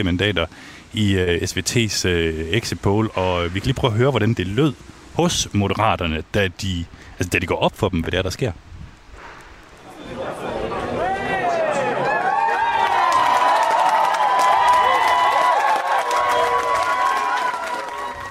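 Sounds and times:
speech: 0.0s - 8.7s
election party crowd cheering: 9.8s - 18.2s.

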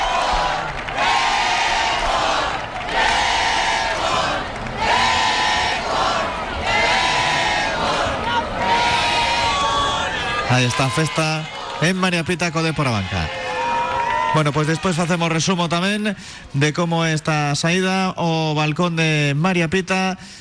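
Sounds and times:
applause: 0.0s - 6.7s, 10.5s - 15.6s
football fans chanting: 0.0s - 10.5s
cheering: 0.0s - 16.0s
speech: 10.5s - 13.4s, 14.3s - 20.3s.

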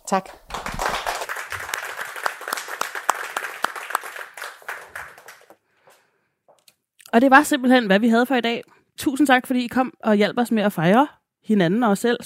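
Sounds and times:
speech: 0.1s - 0.5s, 7.1s - 12.2s
audience applause: 0.4s - 5.6s.

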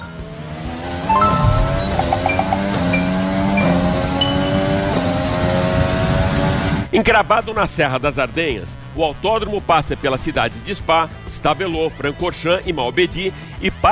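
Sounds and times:
video game racing car engine howling on a virtual lap of Spa-Francorchamps: 0.2s - 6.7s
speech: 7.0s - 13.9s.

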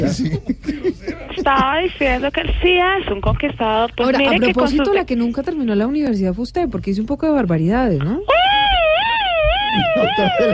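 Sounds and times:
laughter: 0.0s - 1.9s, 9.6s - 10.5s
speech: 0.1s - 0.8s, 1.5s - 8.4s, 9.7s - 10.5s
ambulance siren wailing: 8.3s - 10.5s.

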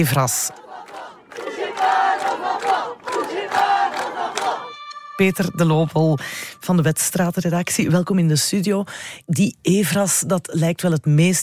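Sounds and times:
speech: 0.0s - 0.6s, 5.2s - 11.4s
protest crowd chanting at a demonstration against EVRAS in central Brussels: 0.0s - 5.7s.

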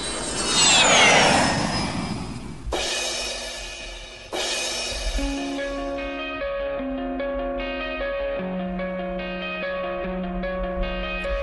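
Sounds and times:
airplane sound effect for a segment transition: 0.0s - 6.1s
music: 2.7s - 11.4s.

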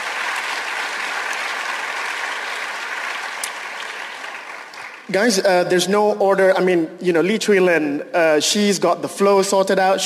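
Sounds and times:
audience applause: 0.0s - 5.4s
speech: 5.1s - 10.0s.

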